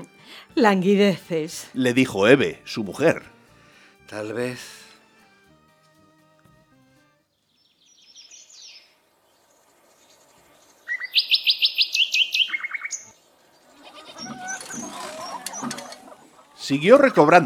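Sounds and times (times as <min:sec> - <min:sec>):
speech: 0:00.4 - 0:03.3, 0:04.1 - 0:04.8, 0:16.7 - 0:17.4
birds chirping in an aviary: 0:07.2 - 0:17.4
rustling: 0:13.6 - 0:16.6.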